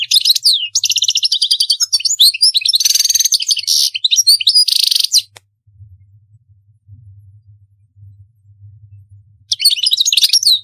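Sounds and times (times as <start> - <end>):
European goldfinch twittering song: 0.0 - 5.4, 9.5 - 10.6.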